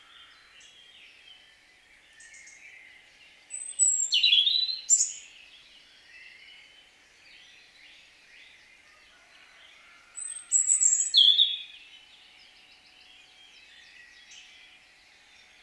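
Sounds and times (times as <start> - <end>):
European robin singing: 2.2 - 5.4, 10.2 - 15.6.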